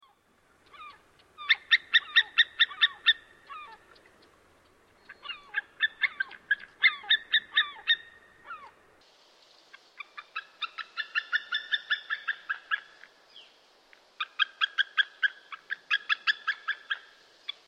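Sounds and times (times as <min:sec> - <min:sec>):
White-tailed eagle yelping: 0:00.6 - 0:04.0, 0:05.0 - 0:08.8, 0:10.0 - 0:13.0, 0:14.2 - 0:17.1.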